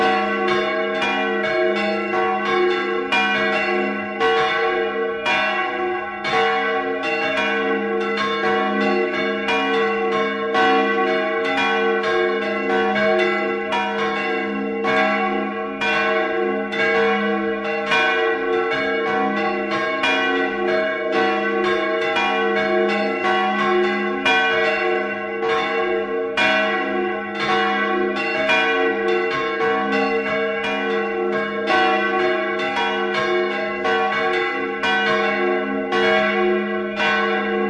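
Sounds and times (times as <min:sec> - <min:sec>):
bells of a lake chapel ringing: 0:00.0 - 0:37.6.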